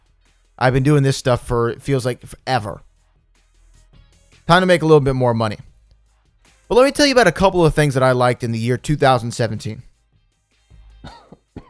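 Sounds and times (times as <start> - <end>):
speech: 0.6 - 2.9, 4.5 - 5.7, 6.7 - 9.9
person coughing and clearing their throat: 11.1 - 11.6.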